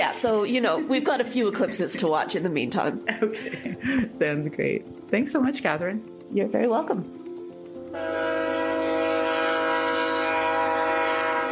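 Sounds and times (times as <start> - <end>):
Via Rail's The Ocean passenger train passing through the Tantramar Marshes: 0.0 - 3.1, 3.8 - 11.5
speech: 0.0 - 7.2
laughter: 2.9 - 4.3
passenger train horn: 7.9 - 11.5.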